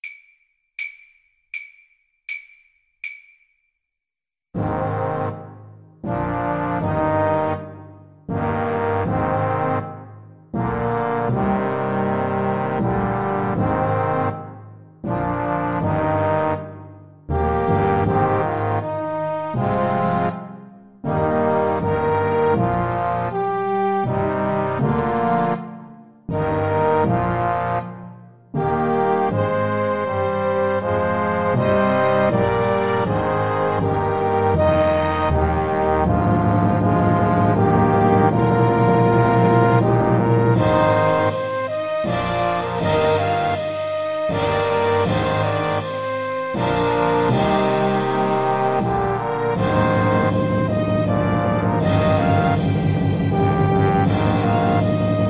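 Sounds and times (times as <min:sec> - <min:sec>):
French horn: 0:04.6 - 0:55.2.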